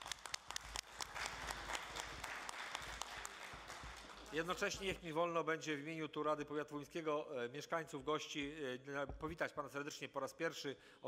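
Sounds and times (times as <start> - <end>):
audience applause welcoming a guest: 0.0 - 5.0
speech: 4.3 - 11.0.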